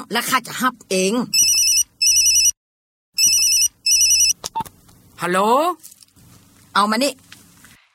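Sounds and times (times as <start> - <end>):
speech: 0.1 - 1.4, 5.2 - 6.0, 6.8 - 7.3
telephone ringing with electronic trill: 1.4 - 2.6, 3.2 - 4.4.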